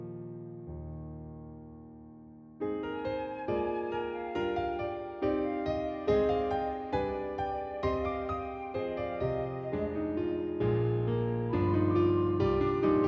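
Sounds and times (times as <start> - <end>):
flute: 2.8 - 13.0.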